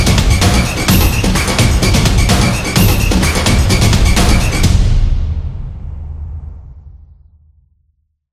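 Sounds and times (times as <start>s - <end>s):
sport percussion background music for action and competition: 0.0s - 5.2s.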